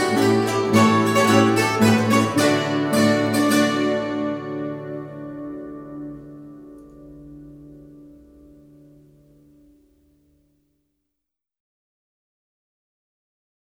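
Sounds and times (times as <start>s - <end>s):
Harz zither playing a light entertainment piece: 0.0s - 9.2s.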